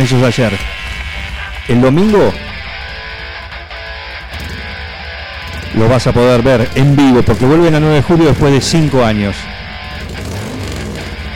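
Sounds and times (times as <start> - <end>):
speech: 0.0 - 0.8, 1.7 - 2.5, 5.8 - 9.5
motorcycle accelerating: 0.0 - 11.3.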